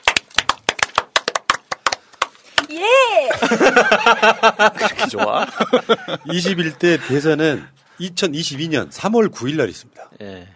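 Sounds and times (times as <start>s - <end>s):
applause: 0.0s - 2.3s
speech: 2.7s - 10.4s
laughter: 3.3s - 7.6s.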